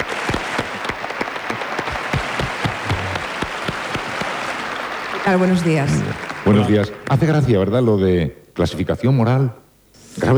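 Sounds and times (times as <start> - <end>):
audience applause: 0.0 - 7.4
speech: 5.3 - 9.6, 10.2 - 10.3.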